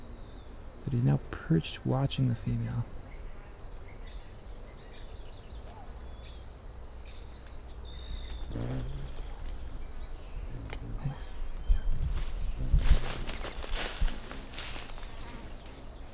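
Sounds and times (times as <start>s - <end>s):
low outdoor rumble: 0.0s - 16.1s
speech: 0.9s - 3.0s
wing buzz of male bird flying around: 4.0s - 16.1s.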